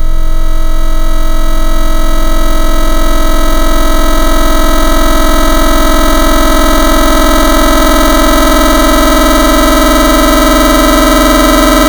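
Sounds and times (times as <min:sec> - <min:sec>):
FM wavetable synth: 0:00.0 - 0:11.8.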